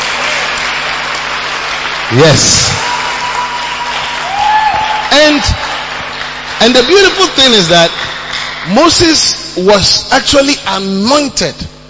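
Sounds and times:
audience clapping: 0.0s - 9.4s
speech: 2.1s - 2.8s, 5.2s - 5.6s, 6.6s - 8.1s, 8.7s - 11.8s.

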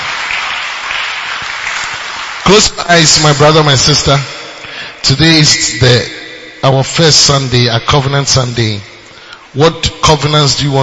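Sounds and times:
crowd clapping: 0.0s - 3.6s
speech: 2.5s - 4.4s, 5.0s - 8.9s, 9.5s - 10.8s.

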